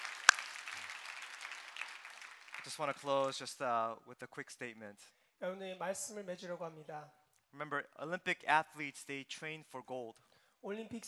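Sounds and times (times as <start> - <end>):
audience applause: 0.0 - 3.6
speech: 2.6 - 11.0.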